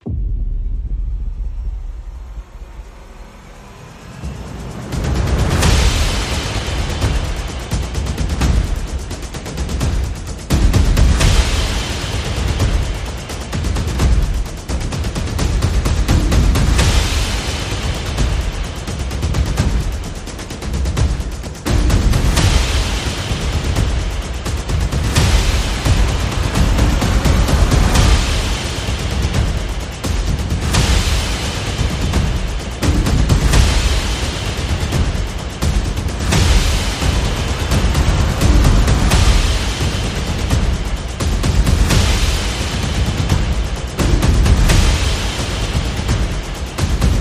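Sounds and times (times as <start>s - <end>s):
percussion: 0.0s - 47.1s.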